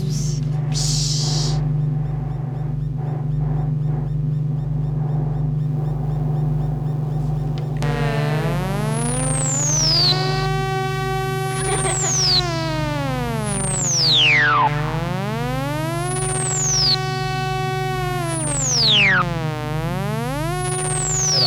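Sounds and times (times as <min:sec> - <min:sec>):
synthetic video-game blaster-like chirps: 0:00.0 - 0:01.6, 0:07.8 - 0:21.4
low droning hum: 0:00.0 - 0:21.4.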